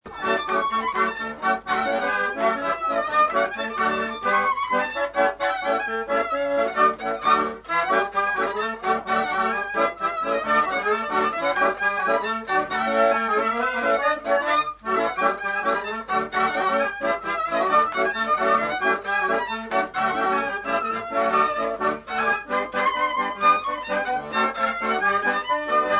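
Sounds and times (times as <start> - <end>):
polka by taraf folk band: 0.0 - 25.9.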